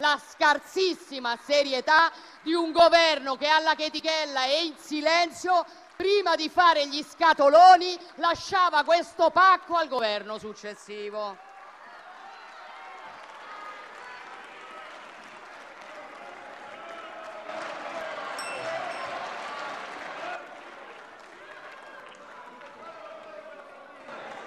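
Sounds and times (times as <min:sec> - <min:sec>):
speech: 0:00.1 - 0:11.5
audience applause: 0:11.4 - 0:24.4.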